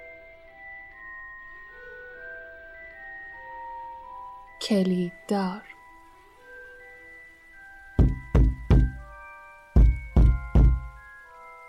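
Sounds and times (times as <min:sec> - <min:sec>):
speech: 0:04.6 - 0:05.7
heavy knocks on a door: 0:08.0 - 0:09.1, 0:09.8 - 0:11.0.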